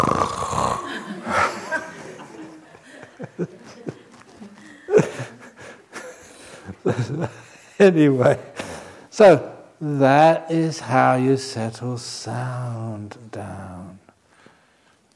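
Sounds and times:
snoring: 0.0s - 1.5s
laughter: 0.6s - 8.8s
speech: 7.2s - 8.5s, 9.2s - 13.8s.

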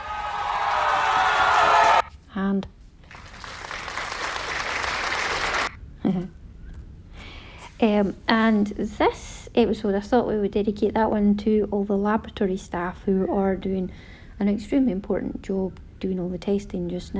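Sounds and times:
cheering and clapping sound effect: 0.0s - 2.1s, 3.1s - 5.7s
speech: 2.4s - 2.8s, 6.1s - 6.4s, 7.9s - 17.1s.

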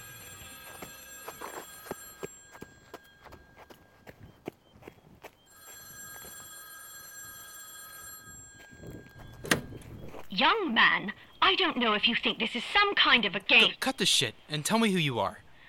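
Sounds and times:
telephone ringing with bell tone: 0.0s - 4.4s, 5.4s - 11.4s
speech: 10.4s - 15.4s.

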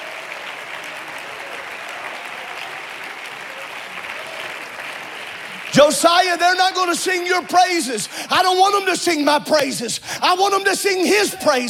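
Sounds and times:
audience clapping hands: 0.0s - 9.2s
speech: 5.8s - 11.6s.

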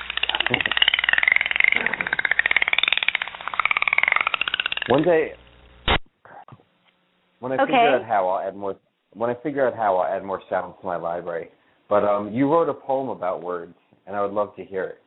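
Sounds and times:
dolphin sounds recording: 0.0s - 5.2s
speech: 0.5s - 0.7s, 4.9s - 5.4s, 7.4s - 15.0s.

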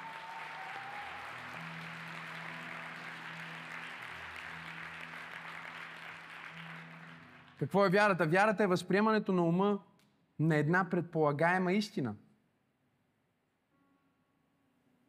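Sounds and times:
audience applause: 0.0s - 7.8s
speech: 7.6s - 12.2s.

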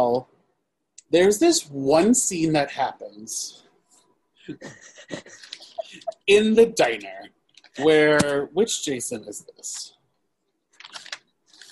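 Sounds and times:
speech: 0.1s - 0.3s, 1.1s - 3.6s, 4.5s - 10.0s
paper rustling as notes are flipped: 10.8s - 11.7s.

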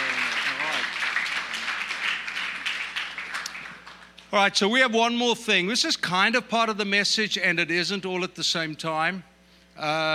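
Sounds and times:
audience applause: 0.0s - 4.2s
speech: 4.3s - 10.1s.

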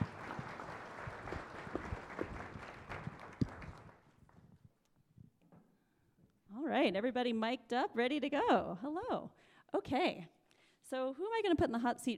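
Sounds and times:
audience applause: 0.0s - 4.2s
speech: 6.8s - 12.1s.

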